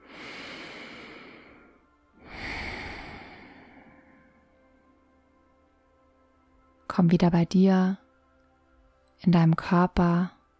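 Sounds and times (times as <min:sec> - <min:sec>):
deep belly breathing during a relaxation exercise: 0:00.0 - 0:04.6
speech: 0:07.0 - 0:08.0, 0:09.2 - 0:10.4.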